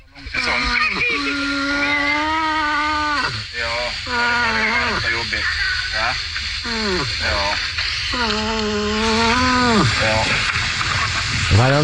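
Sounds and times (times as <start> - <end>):
rushing noise: 0.0 - 11.8
moose moaning calls: 0.6 - 5.2, 8.1 - 10.0.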